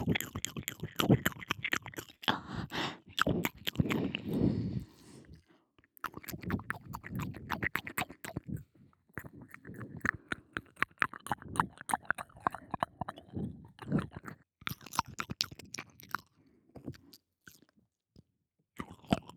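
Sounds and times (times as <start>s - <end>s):
alternating left and right ear licking: 0.0s - 5.4s, 6.0s - 15.6s.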